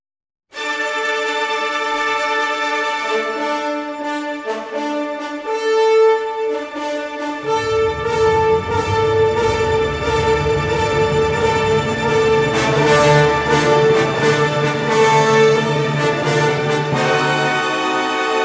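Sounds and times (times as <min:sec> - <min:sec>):
symphony orchestra playing: 0:00.6 - 0:18.4.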